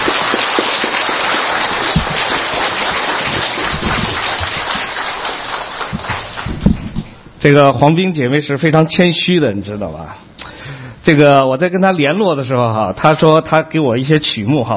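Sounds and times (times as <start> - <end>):
audience applause: 0.0 - 7.2
speech: 7.4 - 10.3, 11.1 - 14.7.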